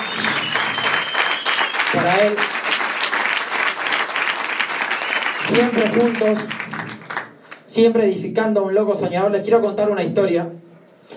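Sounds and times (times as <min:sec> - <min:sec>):
loud audience applause: 0:00.0 - 0:07.7
speech: 0:01.9 - 0:02.6, 0:05.5 - 0:06.6, 0:07.8 - 0:10.7.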